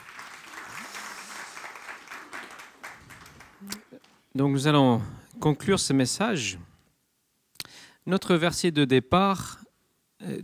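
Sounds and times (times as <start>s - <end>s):
audience applause: 0.0s - 3.8s
speech: 4.4s - 6.7s, 8.0s - 9.6s, 10.2s - 10.4s.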